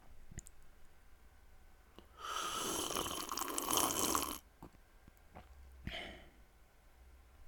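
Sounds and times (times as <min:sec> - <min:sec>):
person sipping coffee: 0:02.0 - 0:05.6.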